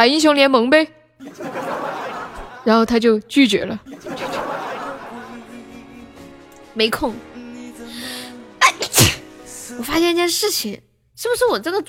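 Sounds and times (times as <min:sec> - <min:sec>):
speech: 0:00.0 - 0:01.6, 0:02.6 - 0:04.4, 0:06.8 - 0:07.3, 0:09.8 - 0:11.8
laughter: 0:01.2 - 0:02.8, 0:03.8 - 0:06.2
person sneezing: 0:08.6 - 0:09.3.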